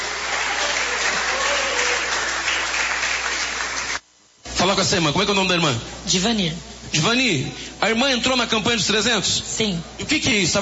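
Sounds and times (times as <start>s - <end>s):
audience clapping hands: 0.0s - 4.0s
speech: 4.7s - 10.6s.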